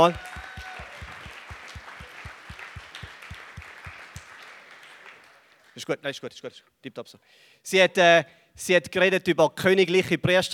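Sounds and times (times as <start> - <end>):
speech: 0.0 - 0.4, 5.8 - 10.5
steady rhythmic stomp or beat: 0.0 - 4.3
audience applauding: 0.0 - 5.9.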